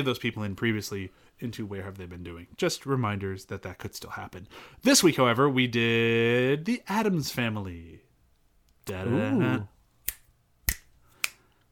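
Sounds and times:
speech: 0.0 - 8.1, 8.8 - 9.7
faint hum: 0.0 - 11.6
crisp finger snaps: 10.0 - 11.6.

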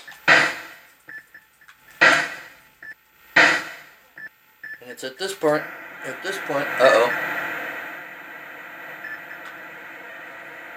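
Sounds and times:
video-game ocean surf noise: 4.8 - 10.7
speech: 4.9 - 7.3.

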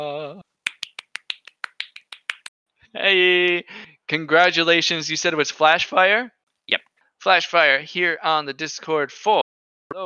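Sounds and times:
single hand clap: 0.6 - 2.5
speech: 3.0 - 9.4.

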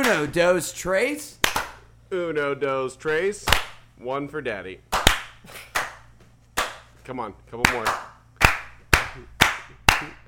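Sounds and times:
hands clapping: 0.0 - 0.3, 1.4 - 1.8, 3.4 - 3.8, 4.9 - 7.0, 7.6 - 10.2
speech: 0.0 - 1.4, 2.1 - 5.7, 7.1 - 8.1.

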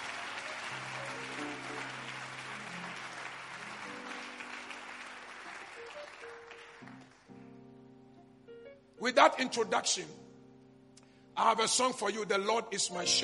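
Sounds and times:
audience clapping hands: 0.0 - 7.4
speech: 9.0 - 10.2, 11.4 - 13.2.

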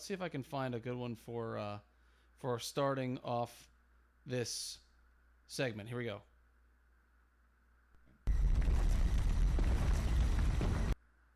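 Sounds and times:
speech: 0.0 - 4.8, 5.5 - 6.3
bomb explosion sound effect from a sound effect app: 8.3 - 11.0.

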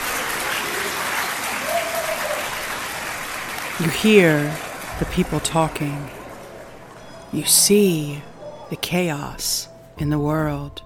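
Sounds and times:
crowd applause: 0.0 - 8.6
speech: 3.8 - 6.2, 7.3 - 10.8.

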